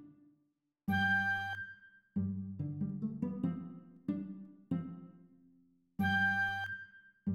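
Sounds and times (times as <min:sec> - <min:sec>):
pizzicato flutes: 0:00.9 - 0:05.1, 0:06.0 - 0:07.3.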